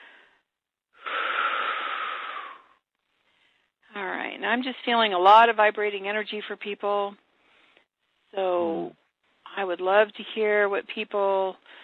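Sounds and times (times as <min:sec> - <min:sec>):
long airy deep breath in and out: 0:00.0 - 0:03.8, 0:07.3 - 0:07.9, 0:11.6 - 0:11.8
speech: 0:04.4 - 0:07.2, 0:08.3 - 0:09.0, 0:09.6 - 0:11.8.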